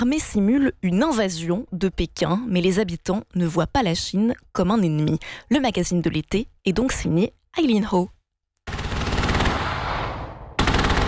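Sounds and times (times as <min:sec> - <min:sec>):
speech: 0:00.0 - 0:08.2
artillery shells firing during military exercise: 0:08.7 - 0:11.0.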